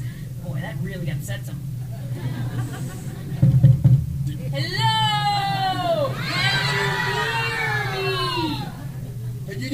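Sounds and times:
speech: 0.7 - 3.0
laughter: 1.8 - 3.8, 5.7 - 9.6
crowd of children shouting and cheering: 4.9 - 9.2.

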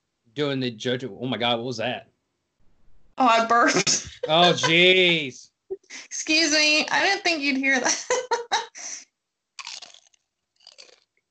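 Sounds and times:
speech: 0.4 - 2.1, 3.2 - 8.4
laughter: 3.4 - 6.2, 7.6 - 9.0
crunchy chewing while eating: 9.6 - 11.1.

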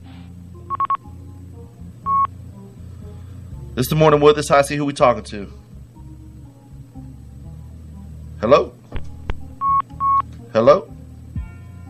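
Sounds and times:
low hum: 0.0 - 11.8
telephone call-waiting beep tones: 0.7 - 1.1, 2.1 - 2.3, 9.6 - 10.3
speech: 3.8 - 5.6, 8.4 - 8.7, 10.6 - 10.9.

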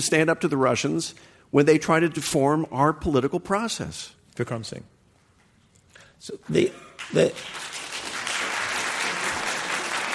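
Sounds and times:
speech: 0.0 - 5.0, 6.2 - 7.7
audience applause at a debate: 7.0 - 10.1.

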